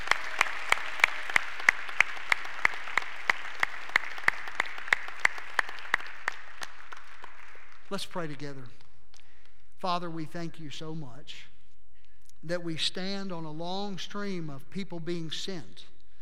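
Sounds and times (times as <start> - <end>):
sharp claps: 0.0 - 9.6
speech: 7.9 - 8.8, 9.8 - 11.5, 12.4 - 15.9.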